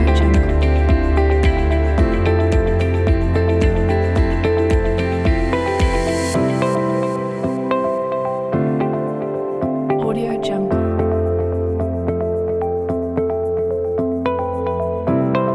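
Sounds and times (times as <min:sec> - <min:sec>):
ambient background corporate music: 0:00.0 - 0:15.5.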